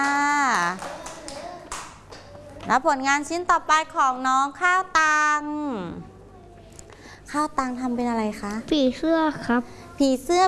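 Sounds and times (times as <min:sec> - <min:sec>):
children in a class clapping for a classmate's butterfly drawing: 0:00.0 - 0:02.7
speech: 0:02.7 - 0:06.1, 0:07.3 - 0:10.4.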